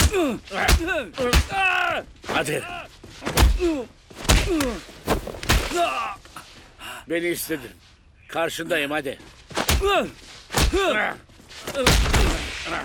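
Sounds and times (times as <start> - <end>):
heavy sharp punches landing: 0.0 - 2.4, 3.2 - 6.2, 9.5 - 11.1, 11.7 - 12.8
speech: 0.2 - 5.0, 5.7 - 6.2, 7.1 - 12.8.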